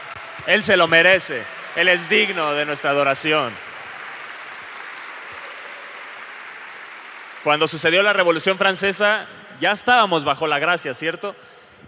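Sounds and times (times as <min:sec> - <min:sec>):
audience applause: 0:00.0 - 0:09.0
speech: 0:00.4 - 0:03.7, 0:07.4 - 0:11.5.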